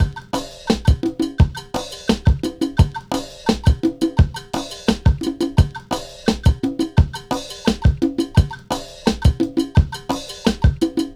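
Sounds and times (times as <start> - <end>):
cinematic funk percussion: 0.0 - 11.1.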